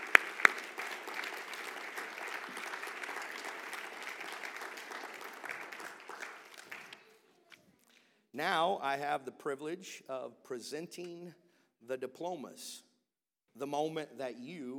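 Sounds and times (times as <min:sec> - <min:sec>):
audience applauding for graduates: 0:00.0 - 0:07.3
speech: 0:08.4 - 0:12.9, 0:13.6 - 0:14.7.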